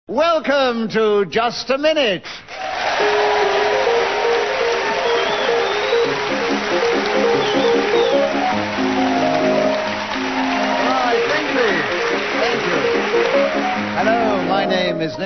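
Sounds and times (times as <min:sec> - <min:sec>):
speech: 0:00.1 - 0:03.3, 0:14.0 - 0:15.2
classical waltz as theme music: 0:03.1 - 0:15.2.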